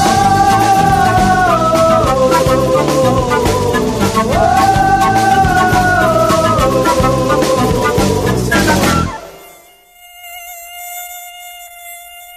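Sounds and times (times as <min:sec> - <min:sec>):
burst of music: 0:00.0 - 0:09.6
Aedes aegypti mosquito buzzing: 0:00.0 - 0:12.3.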